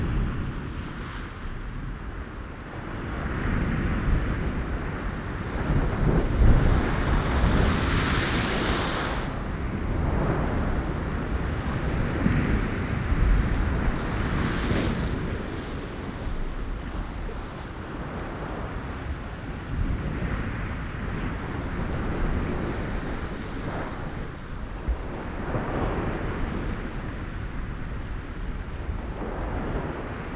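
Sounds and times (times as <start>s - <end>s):
ocean waves at an island: 0.2s - 30.3s.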